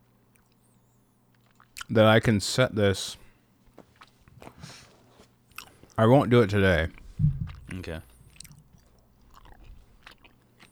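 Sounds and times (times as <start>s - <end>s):
wet chewing and crunching of food: 0.2s - 2.0s, 3.3s - 10.7s
speech: 1.9s - 3.2s, 6.0s - 8.1s
steady low hum: 6.4s - 10.0s.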